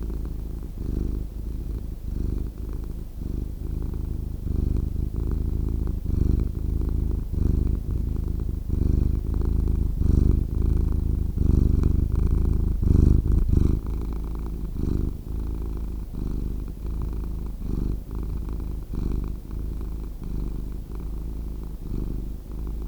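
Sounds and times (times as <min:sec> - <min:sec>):
cat purring: 0:00.0 - 0:22.8.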